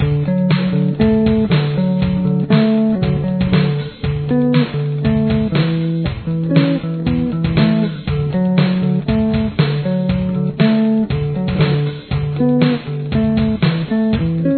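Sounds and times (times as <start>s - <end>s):
bass with chorus effect: 0.0s - 14.5s.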